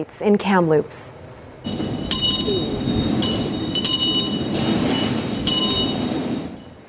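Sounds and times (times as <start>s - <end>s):
speech: 0.0s - 2.7s
Anglican church bell ringing in Nanaimo: 1.7s - 6.8s.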